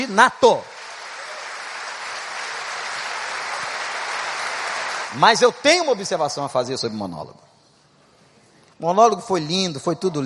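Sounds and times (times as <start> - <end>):
speech: 0.0 - 0.7, 5.1 - 7.5, 8.8 - 10.2
audience applause: 0.5 - 5.3.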